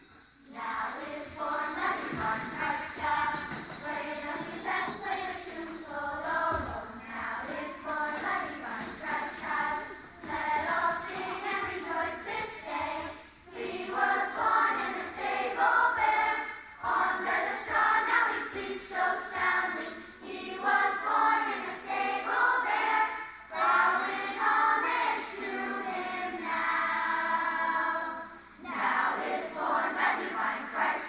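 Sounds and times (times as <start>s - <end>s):
children's choir singing: 0.5s - 31.0s.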